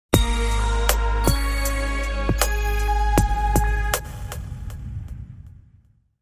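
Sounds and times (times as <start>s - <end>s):
hip hop jingle: 0.1s - 4.0s.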